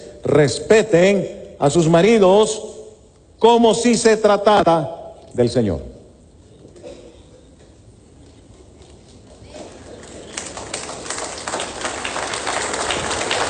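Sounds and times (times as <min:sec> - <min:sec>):
speech: 0:00.2 - 0:02.7, 0:03.4 - 0:05.9
audience applause: 0:09.5 - 0:13.4.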